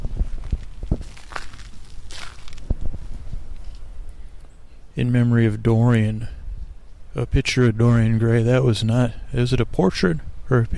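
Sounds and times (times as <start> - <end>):
footsteps walking on crushed stone: 0.0 - 3.0
speech: 5.0 - 6.4, 7.2 - 10.7.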